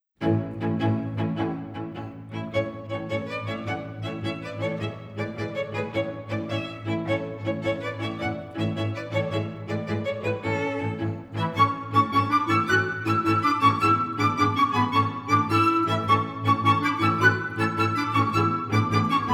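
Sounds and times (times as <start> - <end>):
galop exam music: 0.2 - 19.3.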